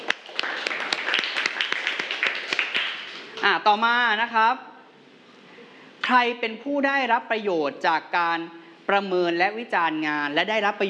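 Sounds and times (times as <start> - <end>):
classroom applause: 0.0 - 3.4
speech: 3.4 - 4.7, 6.1 - 10.8.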